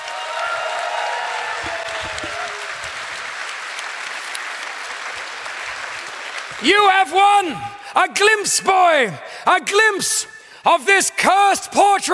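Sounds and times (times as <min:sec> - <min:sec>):
audience applause: 0:00.0 - 0:07.2
speech: 0:06.6 - 0:12.1.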